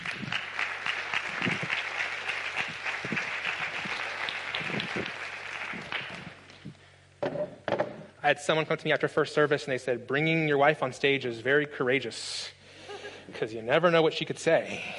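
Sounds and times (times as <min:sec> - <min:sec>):
audience applause: 0:00.0 - 0:06.6
speech: 0:08.3 - 0:12.6, 0:13.4 - 0:14.9.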